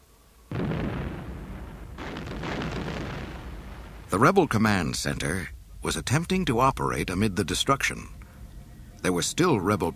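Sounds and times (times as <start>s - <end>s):
crackling rumble: 0.0s - 9.9s
giant mechanical walker exploding and collapsing, Star Wars story: 0.5s - 5.7s
speech: 4.1s - 8.2s, 9.0s - 9.9s.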